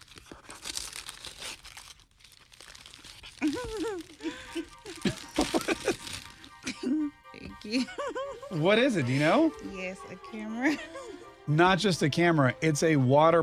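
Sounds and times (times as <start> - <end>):
wrapping paper tearing as a gift is opened: 0.0 - 6.9
laughter: 3.4 - 9.6, 10.6 - 12.2
speech: 7.7 - 13.4.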